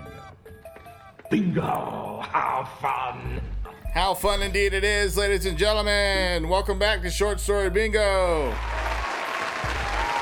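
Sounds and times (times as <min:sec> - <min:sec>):
speech: 0:01.3 - 0:08.8
low rumbling hum: 0:03.4 - 0:09.1
crowd applause: 0:08.0 - 0:10.2.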